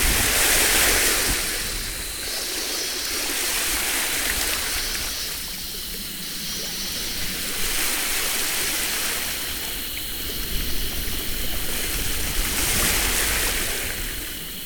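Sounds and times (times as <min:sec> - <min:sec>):
summer seaside breeze: 0:00.0 - 0:14.6.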